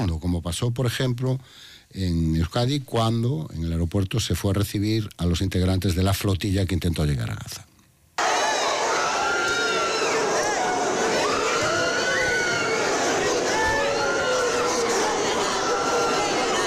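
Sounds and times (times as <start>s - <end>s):
speech: 0.0s - 7.7s
crowd shouting during police charge: 8.2s - 16.6s.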